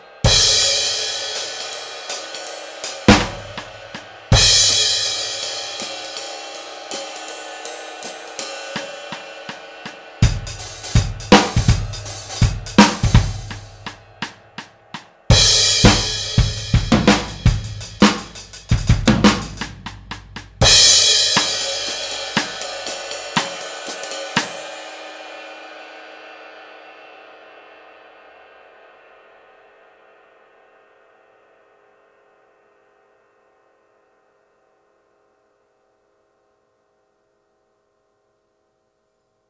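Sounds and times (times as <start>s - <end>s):
jazz music: 0.5s - 7.3s, 10.2s - 14.4s, 15.3s - 24.6s.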